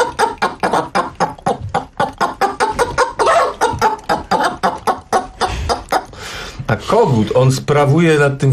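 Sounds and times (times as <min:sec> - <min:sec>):
person vocally imitating a frightened hen clucking: 0:00.0 - 0:06.1
speech: 0:06.9 - 0:08.5.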